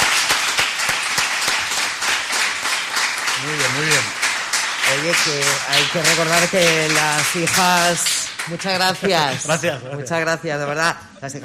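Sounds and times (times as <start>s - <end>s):
students applauding: 0.0s - 9.7s
speech: 5.0s - 11.4s.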